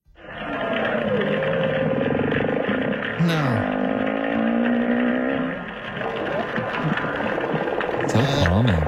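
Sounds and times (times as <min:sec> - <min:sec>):
whale song: 0:00.1 - 0:08.2
speech: 0:08.2 - 0:08.8.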